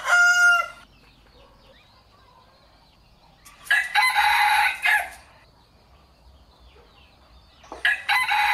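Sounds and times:
rooster crowing: 0.0s - 0.8s, 3.7s - 5.3s, 7.8s - 8.5s.

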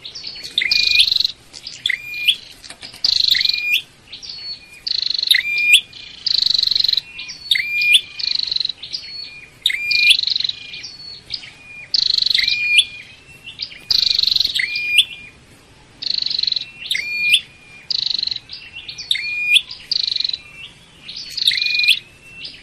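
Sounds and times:
flowerpecker buzzy song with rising whistles: 0.0s - 22.6s.

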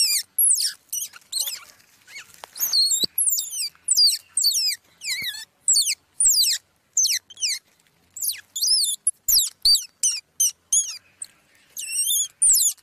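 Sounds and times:
squirrel pup squeaking: 0.0s - 12.8s.

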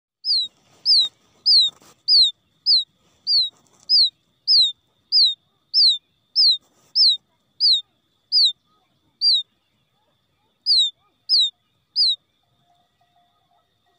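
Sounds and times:
quail chick peeping: 0.2s - 13.9s.

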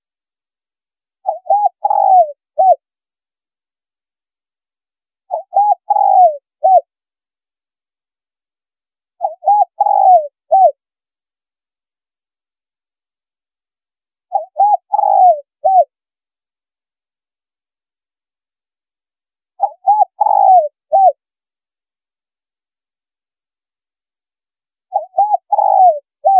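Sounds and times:
spotted dove cooing: 1.2s - 2.8s, 5.3s - 6.9s, 9.2s - 10.8s, 14.3s - 15.9s, 19.6s - 21.2s, 24.9s - 26.3s.

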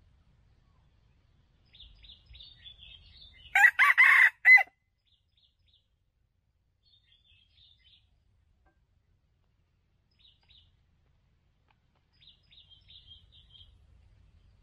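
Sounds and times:
red junglefowl crowing: 3.5s - 4.7s.

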